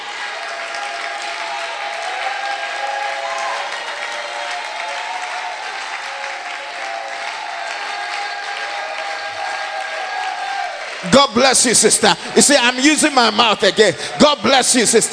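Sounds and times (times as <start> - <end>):
congregation shouting during worship: 0.0 - 11.2
church congregation clapping during worship: 0.0 - 15.1
speech: 11.1 - 15.1.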